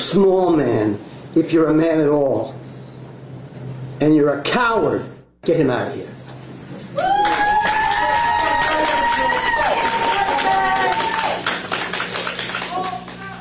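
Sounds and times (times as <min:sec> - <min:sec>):
speech: 0:00.1 - 0:02.6, 0:04.0 - 0:06.2
cheering and high whoops: 0:07.0 - 0:11.4
audience applause: 0:07.0 - 0:13.3.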